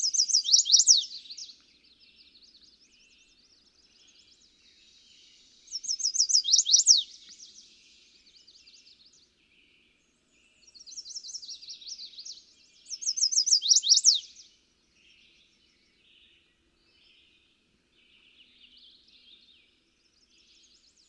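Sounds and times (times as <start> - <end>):
Chestnut-sided Warbler: 0.0 - 1.7, 5.7 - 7.6, 10.7 - 14.4.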